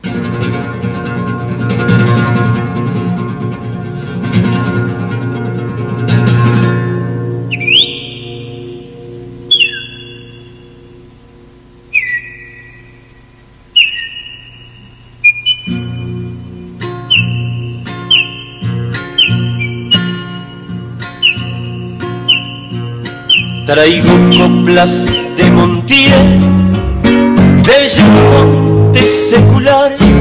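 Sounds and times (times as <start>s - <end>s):
soft guitar chords in a folk song: 0.0s - 13.2s, 14.4s - 30.2s
person whistling in imitation of a thrush's song: 7.2s - 26.0s
speech: 23.7s - 26.6s, 27.7s - 30.2s.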